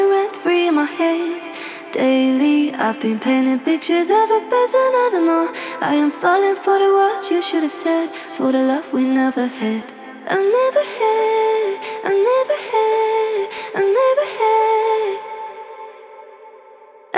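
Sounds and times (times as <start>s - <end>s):
a cappella vocal loop in A minor: 0.0s - 16.2s.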